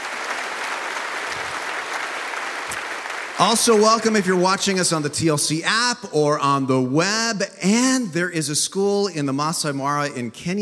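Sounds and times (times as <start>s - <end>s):
church congregation applauding to welcome another church joining by video: 0.0s - 5.0s
speech: 3.4s - 10.6s.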